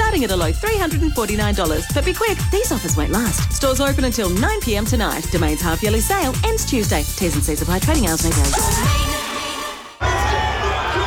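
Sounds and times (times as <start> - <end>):
speech: 0.2 - 9.1
crowd roaring at a Broncos home game: 8.5 - 11.0.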